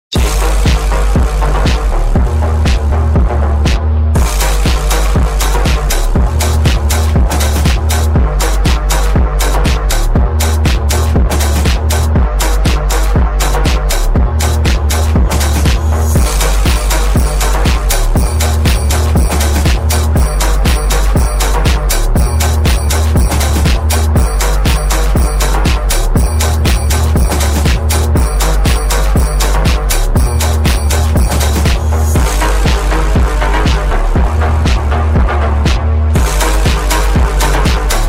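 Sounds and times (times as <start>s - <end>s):
phonk music: 0.1s - 38.0s.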